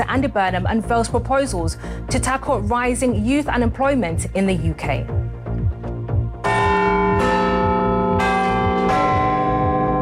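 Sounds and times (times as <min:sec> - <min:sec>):
speech: 0:00.0 - 0:05.2
Big Ben clock bell chiming: 0:06.4 - 0:10.0.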